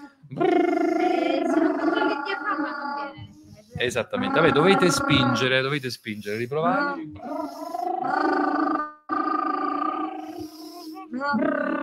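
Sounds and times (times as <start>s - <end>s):
lip trill vocal exercise: 0.0s - 11.8s
speech: 3.8s - 7.4s, 8.0s - 8.8s, 11.2s - 11.8s.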